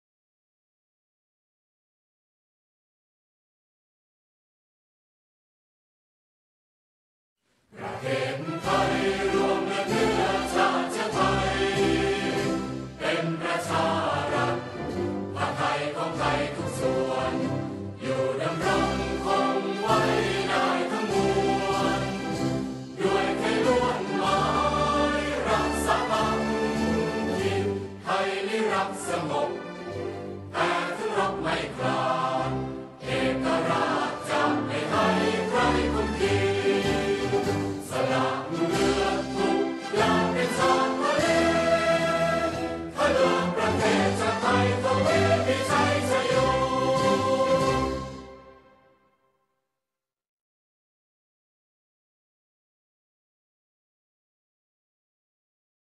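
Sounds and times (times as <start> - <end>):
national anthem: 7.7 - 49.2.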